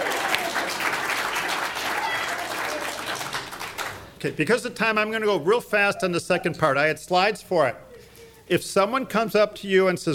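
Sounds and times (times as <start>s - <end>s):
crowd clapping in a round of applause: 0.0s - 4.2s
speech: 4.2s - 7.8s, 8.5s - 10.1s.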